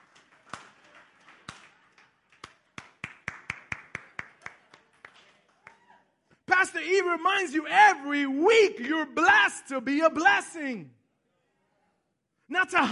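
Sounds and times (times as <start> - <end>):
audience slow clap: 0.0 - 5.9
speech: 6.7 - 11.0, 12.5 - 12.9.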